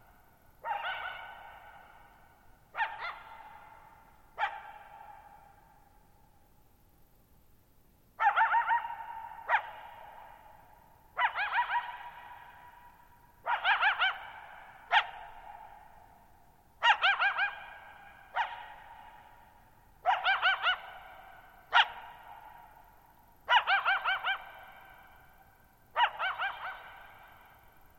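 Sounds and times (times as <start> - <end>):
coyote barking and yipping: 0.6 - 2.1, 2.7 - 5.6, 8.2 - 10.5, 11.2 - 16.0, 16.8 - 22.7, 23.4 - 25.1, 25.9 - 27.5.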